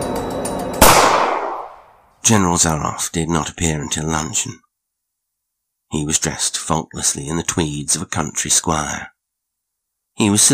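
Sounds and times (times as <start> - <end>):
distant pistol shot in a jungle: 0.8 - 2.0
speech: 2.3 - 4.6, 5.9 - 9.1, 10.2 - 10.5.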